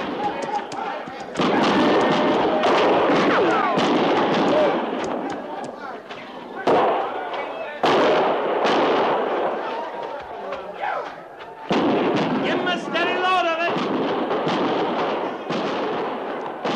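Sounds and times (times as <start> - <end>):
people shouting: 0.0 - 6.0, 9.4 - 13.7
soldiers' gunfire volleys during a fight at a camp: 0.0 - 6.0, 6.6 - 9.7, 11.7 - 16.7.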